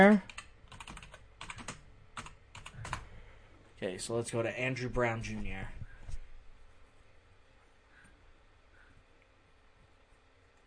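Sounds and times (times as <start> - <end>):
speech: 0.0 - 0.3, 3.8 - 5.8
typing on a computer keyboard: 0.0 - 3.1.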